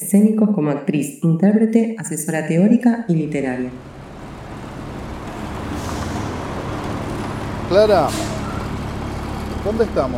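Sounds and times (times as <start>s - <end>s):
speech: 0.0s - 4.0s, 7.7s - 8.4s, 9.6s - 10.1s
cars and heavy vehicles rumbling at the intersection of Donato Álvarez and Luis Viale: 3.3s - 10.1s
bus or truck brake hiss: 5.6s - 9.8s.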